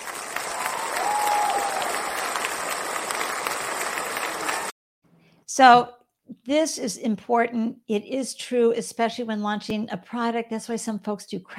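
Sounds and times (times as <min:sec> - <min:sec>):
applause: 0:00.0 - 0:04.8
speech: 0:05.6 - 0:11.5.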